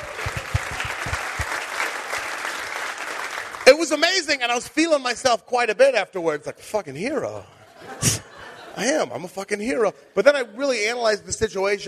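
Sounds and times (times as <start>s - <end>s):
small group clapping: 0.0s - 3.8s
speech: 3.8s - 8.2s, 8.8s - 11.8s
laughter: 7.5s - 9.1s.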